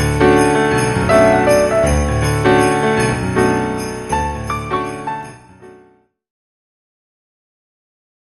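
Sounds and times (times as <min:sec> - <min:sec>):
Christmas carol: 0:00.0 - 0:05.5.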